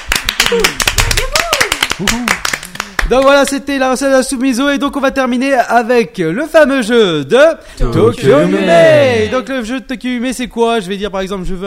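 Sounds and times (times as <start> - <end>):
audience applause: 0.0 - 3.2
speech: 0.5 - 1.0, 2.0 - 2.3, 3.1 - 11.6
voices calling out: 7.9 - 9.4.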